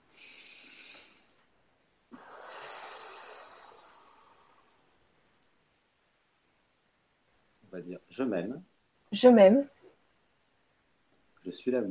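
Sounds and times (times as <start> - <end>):
deep breath inhale and exhale: 0.0 - 1.5, 2.1 - 5.0
speech: 7.7 - 9.8, 11.4 - 11.9.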